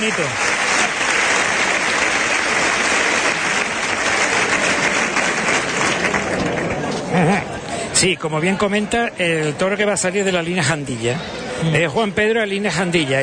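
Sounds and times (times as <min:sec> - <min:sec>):
speech: 0:00.0 - 0:00.6, 0:08.0 - 0:13.2
bullring crowd ovation: 0:00.0 - 0:07.4.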